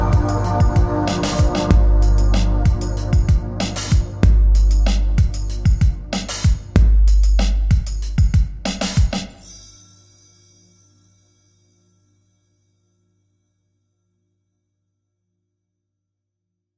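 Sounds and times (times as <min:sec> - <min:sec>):
music beat: 0:00.0 - 0:10.6.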